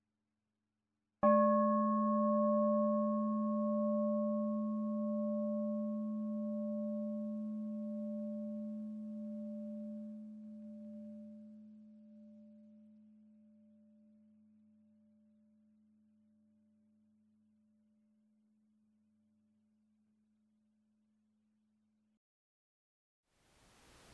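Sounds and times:
meditation bell ringing: 1.2s - 11.3s.

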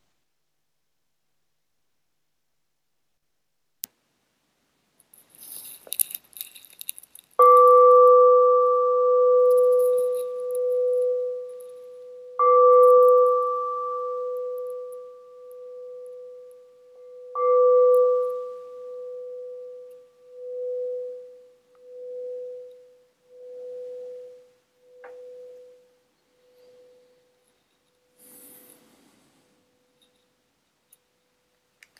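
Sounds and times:
faint clicks and rustling: 5.0s - 7.8s
bell ringing: 7.4s - 27.3s.

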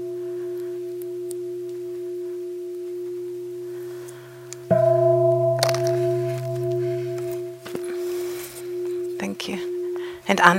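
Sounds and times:
gong strikes: 4.6s - 10.5s
speech: 9.4s - 9.7s, 10.3s - 10.5s.

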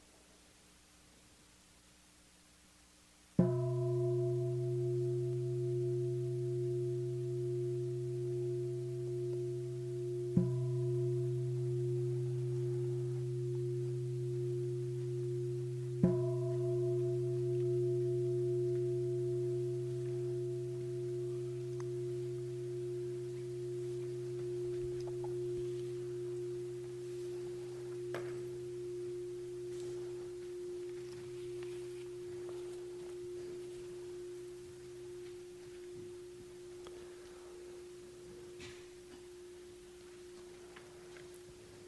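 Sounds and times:
meditation gong ringing: 3.4s - 41.8s.

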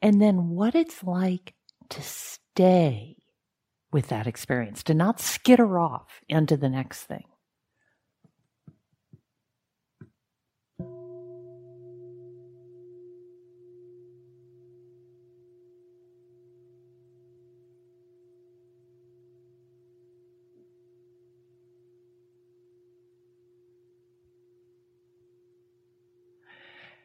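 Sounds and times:
speech: 0.0s - 3.2s, 3.9s - 7.3s
meditation bell ringing: 10.8s - 26.4s.

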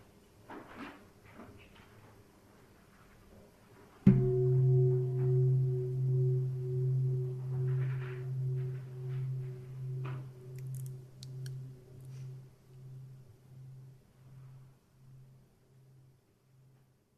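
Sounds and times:
single strike of a meditation gong: 4.1s - 13.9s.

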